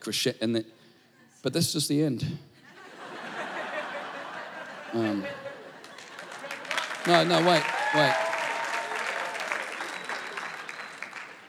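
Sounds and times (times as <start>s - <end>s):
speech: 0.0s - 0.8s, 1.4s - 2.5s, 4.9s - 5.5s, 7.0s - 8.2s
laughter: 2.6s - 8.2s
audience clapping: 5.0s - 11.4s.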